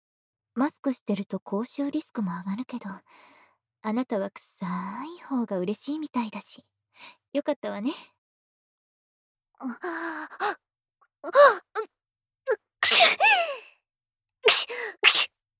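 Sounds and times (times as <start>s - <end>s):
speech: 0.6s - 8.1s, 9.6s - 10.6s, 11.2s - 11.9s
sneeze: 12.8s - 13.1s, 14.5s - 15.3s.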